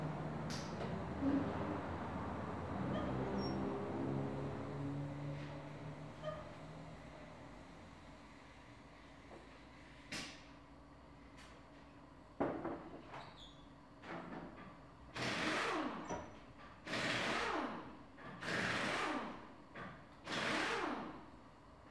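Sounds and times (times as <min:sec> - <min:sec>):
auto repair shop noise during car service: 0:00.0 - 0:10.4, 0:14.2 - 0:21.2.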